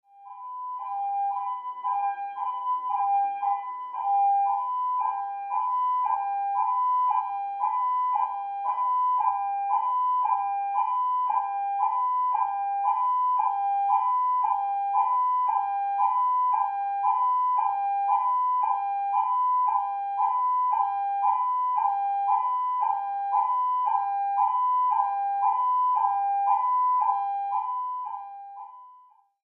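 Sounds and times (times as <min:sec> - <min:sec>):
slow ambulance siren: 0:00.0 - 0:29.3.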